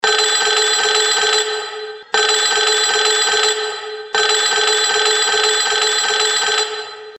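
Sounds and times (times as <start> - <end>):
bell: 0.0 - 7.1.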